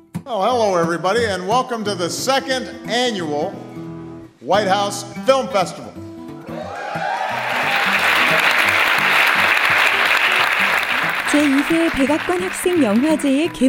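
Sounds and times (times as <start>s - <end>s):
speech: 0.3s - 3.6s, 4.5s - 5.9s, 11.3s - 13.6s
audience cheering: 6.4s - 13.3s.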